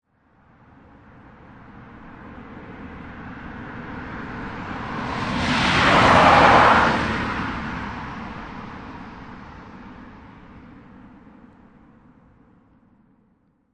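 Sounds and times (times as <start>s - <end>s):
car passing by on a dry road at 45 mph: 2.2s - 11.5s.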